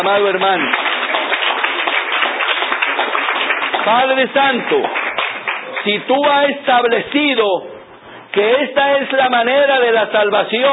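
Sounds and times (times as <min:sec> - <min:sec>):
speech: 0:00.0 - 0:00.9, 0:03.8 - 0:05.0, 0:05.8 - 0:07.7, 0:08.4 - 0:10.7
church congregation clapping in praise during a Spanish-language sermon: 0:00.0 - 0:07.4.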